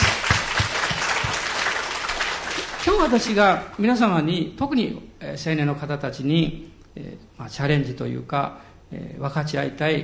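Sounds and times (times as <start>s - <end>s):
audience applause: 0.0s - 3.6s
speech: 2.8s - 10.0s.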